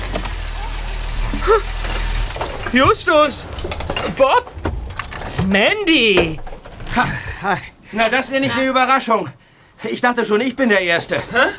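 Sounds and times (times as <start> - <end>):
MG car engine running as it arrives: 1.2 - 8.7
speech: 1.5 - 1.8, 2.7 - 4.5, 5.5 - 11.5.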